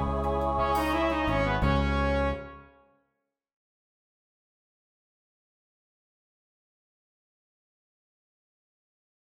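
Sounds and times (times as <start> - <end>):
full band MIDI music: 0.1 - 2.5.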